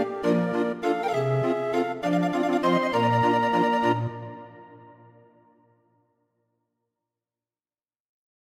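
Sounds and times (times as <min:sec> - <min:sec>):
waltz music: 0:00.0 - 0:05.4.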